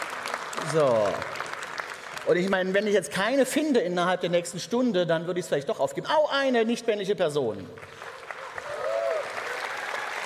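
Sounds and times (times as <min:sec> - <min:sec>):
audience applause at a panel event: 0:00.0 - 0:02.8, 0:07.8 - 0:10.2
speech: 0:00.6 - 0:01.4, 0:02.3 - 0:08.0.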